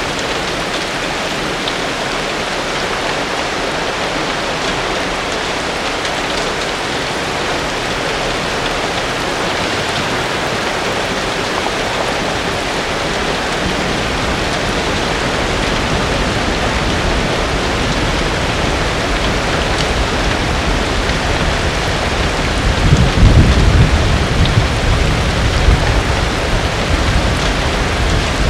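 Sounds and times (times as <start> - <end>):
rain on a farm: 0.0 - 28.4.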